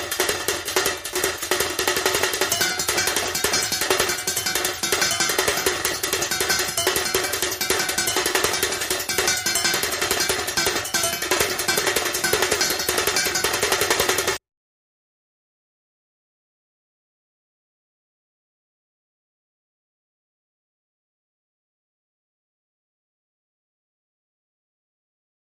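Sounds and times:
high drums: 0.0s - 14.4s.

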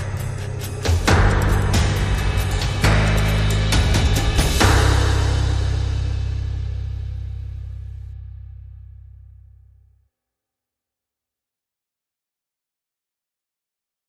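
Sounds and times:
drums: 0.0s - 8.1s
bass: 0.0s - 10.1s.

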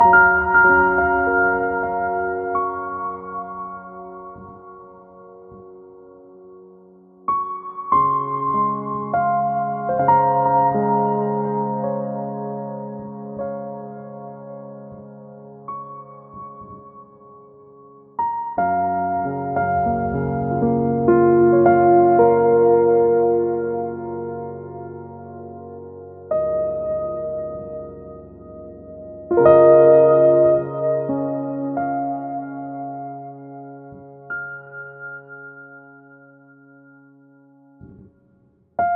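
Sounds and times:
ethereal piano: 0.0s - 38.9s.

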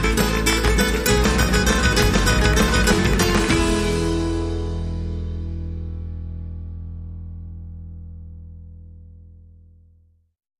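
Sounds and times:
indie flamenco music: 0.0s - 6.7s.

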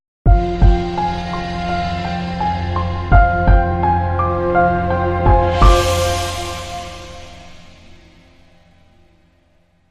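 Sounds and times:
crime music sting: 0.8s - 8.5s.

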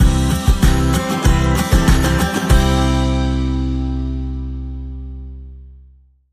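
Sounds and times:
radio bumper jingle: 0.7s - 4.3s.

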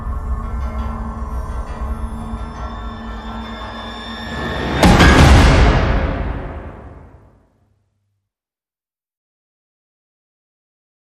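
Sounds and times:
tribal fighting music: 0.8s - 7.4s.

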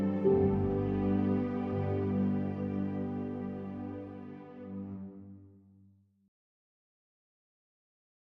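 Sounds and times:
strings: 0.0s - 5.4s.

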